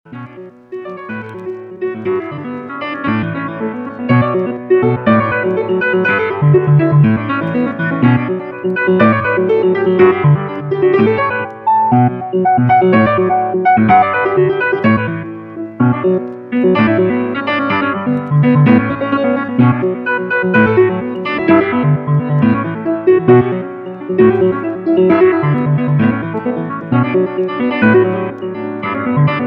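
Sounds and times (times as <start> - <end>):
micropiano: 0.1 - 29.4.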